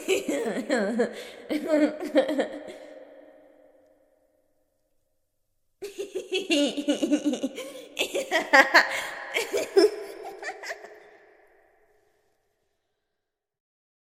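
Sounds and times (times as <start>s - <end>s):
crazy girl laughing manically: 0.0s - 2.9s, 5.8s - 11.4s.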